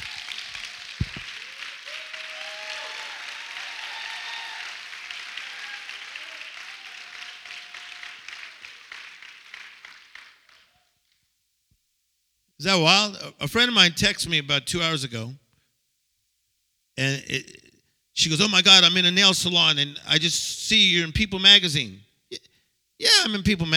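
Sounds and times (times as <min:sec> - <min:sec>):
audience clapping loudly: 0:00.0 - 0:10.8
speech: 0:12.6 - 0:15.4, 0:17.0 - 0:17.6, 0:18.2 - 0:22.1, 0:23.0 - 0:23.7.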